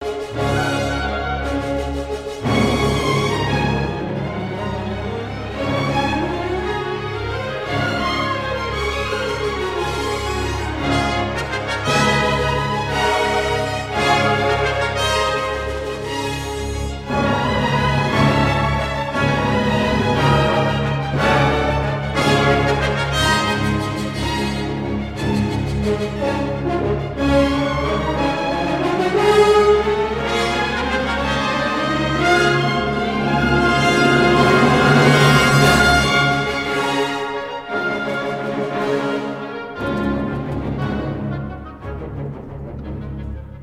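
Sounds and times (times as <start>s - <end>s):
violin with orchestra: 0.0s - 43.6s.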